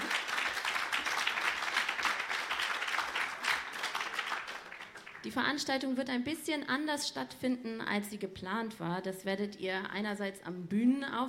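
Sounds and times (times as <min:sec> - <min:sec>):
audience applause: 0:00.0 - 0:05.2
speech: 0:05.2 - 0:11.2.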